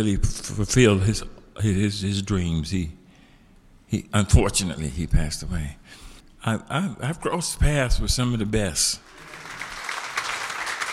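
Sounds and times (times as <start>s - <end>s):
speech: 0.0s - 3.0s, 3.9s - 9.1s
audience applause: 9.1s - 10.9s.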